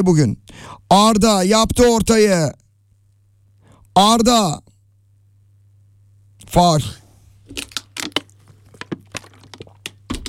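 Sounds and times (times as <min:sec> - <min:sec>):
speech: 0:00.0 - 0:02.6, 0:04.0 - 0:04.7, 0:06.5 - 0:07.7
plastic water bottle being bitten: 0:07.4 - 0:10.2.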